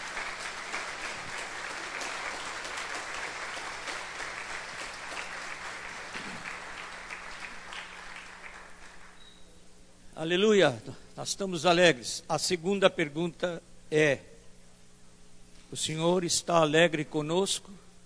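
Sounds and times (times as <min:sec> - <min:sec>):
audience applauding: 0:00.0 - 0:09.2
speech: 0:10.2 - 0:14.3, 0:15.7 - 0:17.8.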